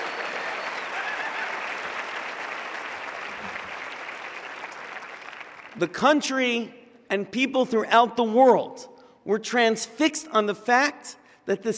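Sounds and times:
crowd applauding: 0.0 - 5.9
speech: 5.8 - 11.7.

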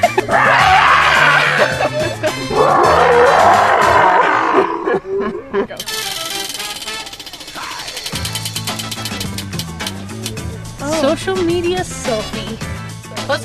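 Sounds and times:
laughter: 0.0 - 2.9, 4.5 - 5.9
loud rhythmic music with pulsing beat: 0.0 - 3.8, 5.8 - 13.4
person growling imitating a cougar: 2.4 - 5.6
speech: 11.3 - 12.7.

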